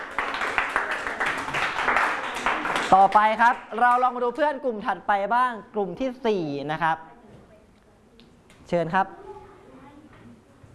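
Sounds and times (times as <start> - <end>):
class clapping for a classmate: 0.0 - 4.2
speech: 2.9 - 7.1, 8.7 - 9.2.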